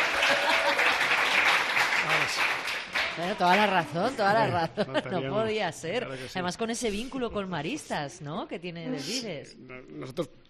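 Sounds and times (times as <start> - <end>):
applause in a radio studio: 0.0 - 3.9
speech: 2.3 - 2.6, 3.2 - 10.4.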